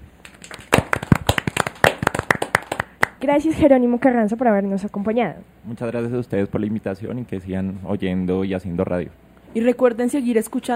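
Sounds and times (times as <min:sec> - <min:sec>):
audience applause: 0:00.2 - 0:03.2
speech: 0:03.2 - 0:10.7.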